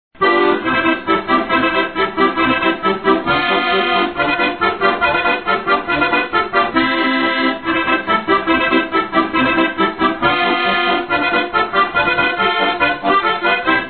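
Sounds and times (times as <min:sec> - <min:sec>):
music loop: 0:00.2 - 0:13.8.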